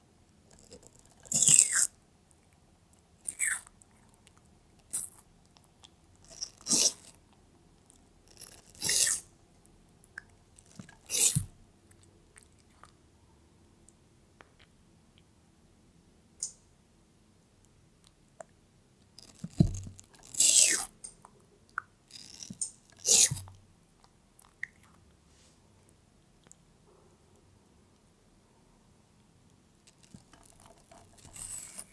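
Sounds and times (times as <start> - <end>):
pet tortoise eating watermelon in wet crunchy bites: 0.5 - 2.0, 3.1 - 9.3, 10.1 - 13.0, 19.2 - 21.2, 22.1 - 23.6, 29.8 - 31.9.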